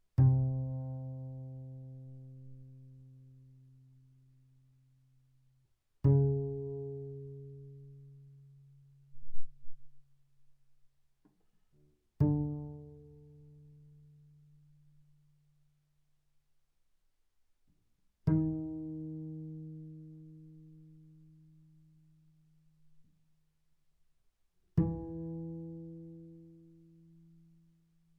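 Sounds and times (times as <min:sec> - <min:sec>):
double bass pizzicato sul G fortissimo: 0:00.2 - 0:04.2, 0:06.1 - 0:10.0, 0:12.1 - 0:15.0, 0:18.2 - 0:22.5, 0:24.7 - 0:27.8.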